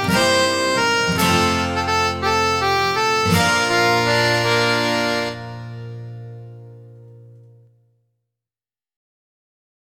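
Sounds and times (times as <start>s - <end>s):
recorder folk tune played as play-along: 0.0s - 7.5s.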